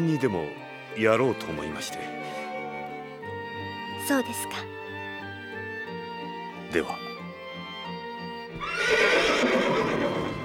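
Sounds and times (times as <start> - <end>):
speech: 0.0 - 2.4, 4.1 - 4.8, 6.7 - 7.0
horse neighing: 8.6 - 10.4.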